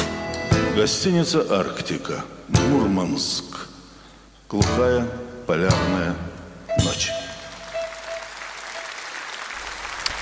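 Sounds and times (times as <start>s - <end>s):
speech: 0.8s - 3.7s, 4.5s - 7.2s
audience applause: 7.5s - 10.2s.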